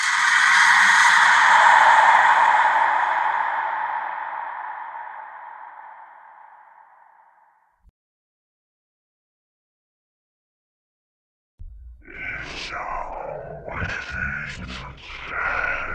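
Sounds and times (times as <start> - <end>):
creepy horror whisper: 0.0 - 7.2, 11.6 - 15.9.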